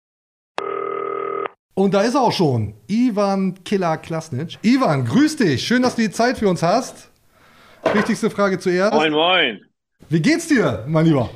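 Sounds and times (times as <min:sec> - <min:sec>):
electronic telephone ringing: 0:00.6 - 0:01.6
speech: 0:01.8 - 0:07.1, 0:07.8 - 0:11.3.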